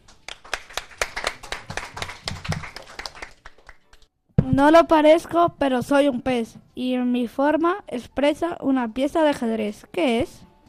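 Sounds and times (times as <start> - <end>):
hands clapping: 0.0 - 4.1
speech: 4.5 - 10.5.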